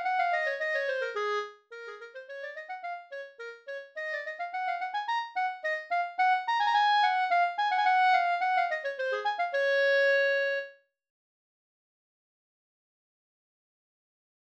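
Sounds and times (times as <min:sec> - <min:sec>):
clarinet: 0:00.0 - 0:10.9.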